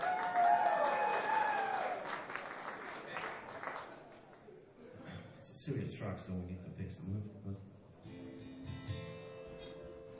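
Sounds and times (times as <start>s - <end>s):
high cheering voices: 0.0s - 2.4s
audience applause: 0.0s - 4.5s
speech: 5.6s - 7.8s.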